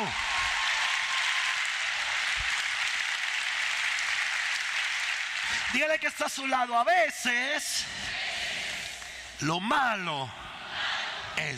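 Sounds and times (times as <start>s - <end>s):
audience applause: 0.0s - 6.1s
speech: 5.7s - 8.3s, 9.4s - 10.4s, 11.4s - 11.5s.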